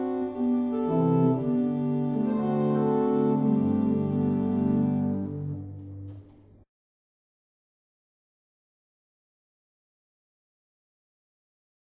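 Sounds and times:
barrel organs: 0:00.0 - 0:06.4.

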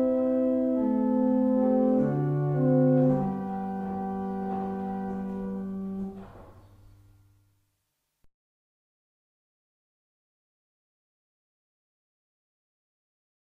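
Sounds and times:
barrel organs: 0:00.0 - 0:07.2.

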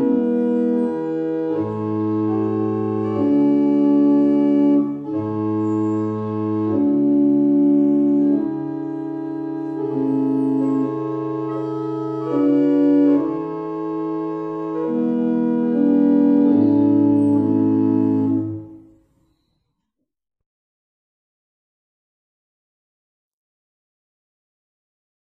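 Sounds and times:
barrel organs playing a morning hymn: 0:00.0 - 0:18.9.

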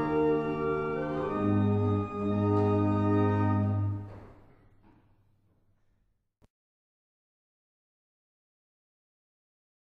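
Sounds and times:
barrel organs playing a German hymn: 0:00.0 - 0:04.1.

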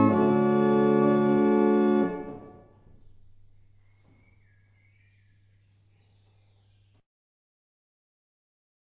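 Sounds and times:
barrel organs playing in Prague: 0:00.0 - 0:04.6.

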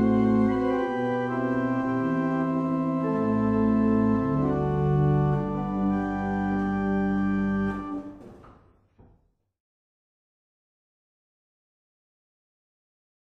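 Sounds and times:
barrel organ: 0:00.0 - 0:08.2.

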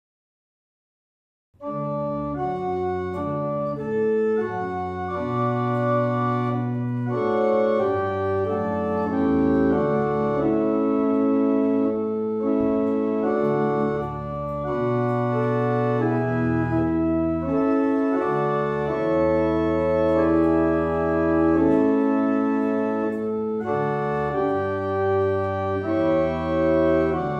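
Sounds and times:
barrel organs: 0:01.6 - 0:27.3.

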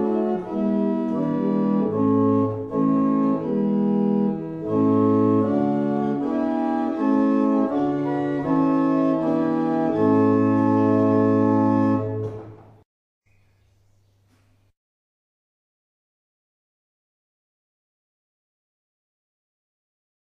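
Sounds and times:
barrel organ: 0:00.0 - 0:12.6.

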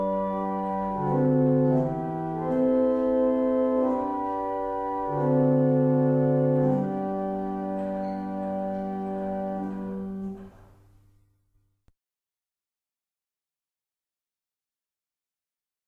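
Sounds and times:
barrel organs playing in Abingdon: 0:00.0 - 0:11.0.

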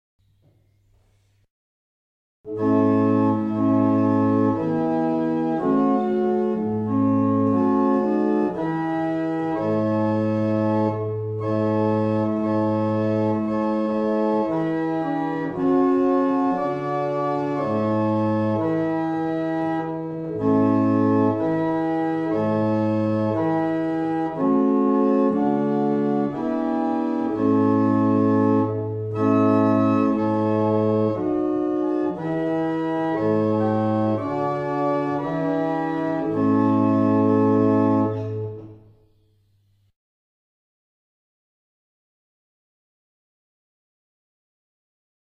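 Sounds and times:
barrel organs playing a hymn: 0:02.5 - 0:38.8.

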